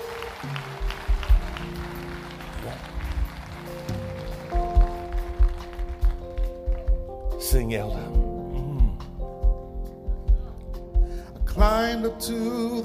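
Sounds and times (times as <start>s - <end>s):
audience clapping hands: 0.0s - 7.6s
sustained organ chords: 0.0s - 12.8s
thumping low beat: 0.7s - 12.8s
speech: 7.5s - 8.3s, 11.6s - 12.8s.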